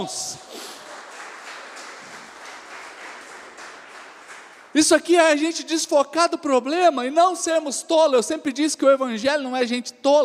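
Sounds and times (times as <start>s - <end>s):
speech: 0.0s - 0.5s, 4.7s - 10.2s
audience applause: 0.0s - 4.8s.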